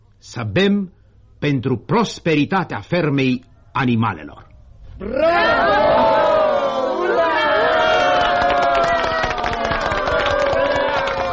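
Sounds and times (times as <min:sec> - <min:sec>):
speech: 0:00.2 - 0:06.1
enthusiastic cheering: 0:05.0 - 0:11.3
applause: 0:07.5 - 0:11.3.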